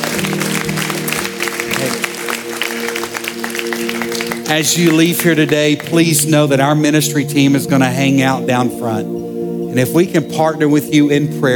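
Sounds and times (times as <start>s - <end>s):
audience applause: 0.0s - 6.3s
speech: 4.5s - 11.5s.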